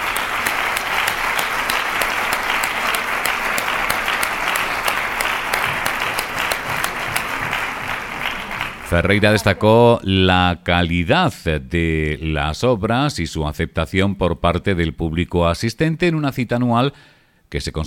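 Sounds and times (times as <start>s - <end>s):
loud prolonged theatre applause: 0.0s - 9.8s
speech: 8.9s - 17.8s.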